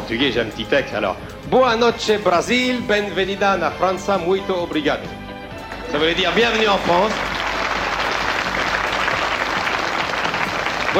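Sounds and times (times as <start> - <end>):
speech: 0.1 - 5.2, 5.9 - 7.4
audience applause: 6.0 - 10.9.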